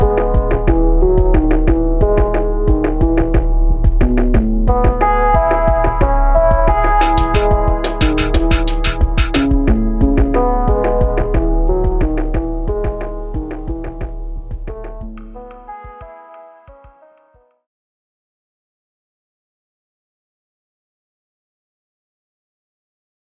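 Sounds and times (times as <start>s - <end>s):
lofi music: 0.0s - 17.5s.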